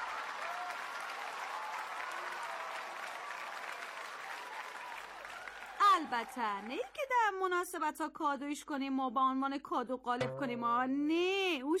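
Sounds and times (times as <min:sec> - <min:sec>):
audience applause: 0:00.0 - 0:07.0
speech: 0:06.0 - 0:11.7.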